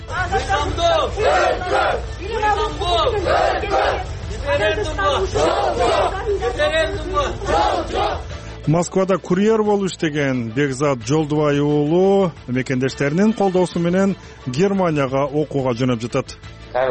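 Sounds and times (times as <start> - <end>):
speech: 0.3 - 16.8
peace march crowd in Bishkek chanting slogans against a referendum: 1.0 - 2.2, 2.9 - 8.3.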